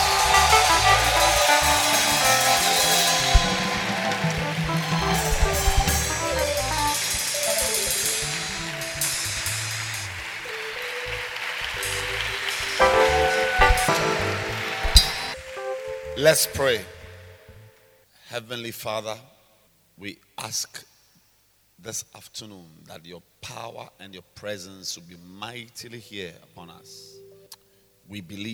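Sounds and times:
audience clapping hands: 0.0 - 16.1
speech: 16.3 - 16.9, 18.3 - 19.3, 20.0 - 20.9, 21.8 - 27.2, 28.1 - 28.5.

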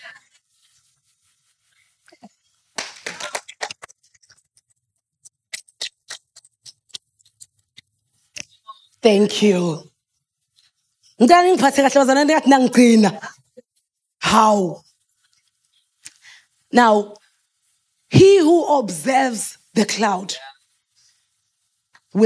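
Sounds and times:
audience clapping: 2.8 - 3.9
speech: 9.0 - 9.9, 11.2 - 13.3, 14.3 - 14.8, 16.7 - 17.2, 18.1 - 20.5.

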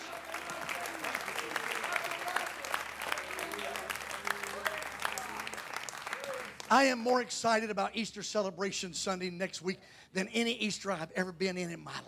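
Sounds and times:
audience clapping hands: 0.0 - 7.3
speech: 6.7 - 12.0.

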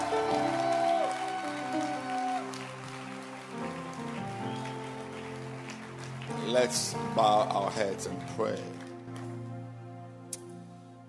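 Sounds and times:
hands clapping: 0.0 - 9.3
speech: 6.5 - 8.8.

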